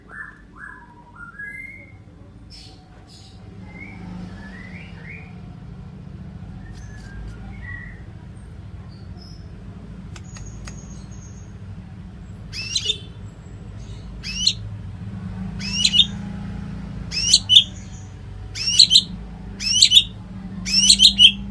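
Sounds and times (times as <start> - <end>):
white-rumped shama song: 12.6 - 13.0, 13.8 - 14.6, 15.6 - 16.2, 17.1 - 18.0, 18.6 - 20.1, 20.7 - 21.4.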